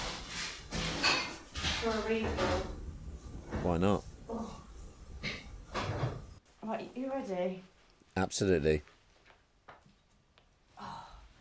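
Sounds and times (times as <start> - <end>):
clattering knocks and rattles from taking champagne out of a fridge: 0.0 - 4.1, 5.2 - 6.4
speech: 1.8 - 2.8, 3.6 - 4.5, 6.7 - 9.0.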